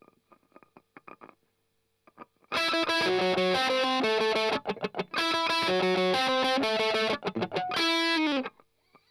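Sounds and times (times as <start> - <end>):
strummed octaves: 2.6 - 8.5.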